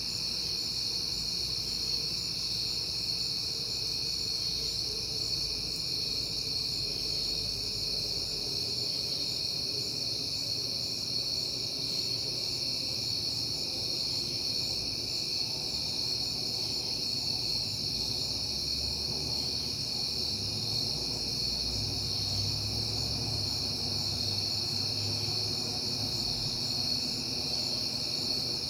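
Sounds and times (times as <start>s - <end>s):
dense shrill cricket chorus: 0.0s - 28.6s
low hum of passing cars: 21.2s - 26.8s.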